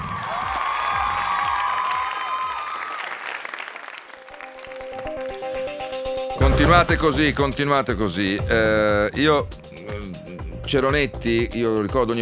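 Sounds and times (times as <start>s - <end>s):
applause sound effect: 0.0s - 5.6s
speech: 6.6s - 9.6s, 10.7s - 12.2s.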